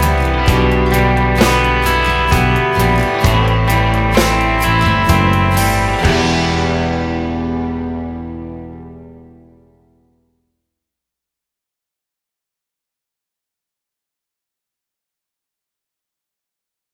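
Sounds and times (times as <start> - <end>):
arpeggios in 3/4 time: 0.0 - 10.0.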